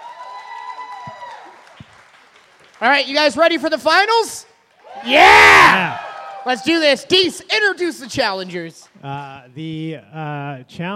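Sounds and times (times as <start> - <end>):
audience applause: 0.0 - 3.6, 4.7 - 6.9
speech: 2.8 - 10.9.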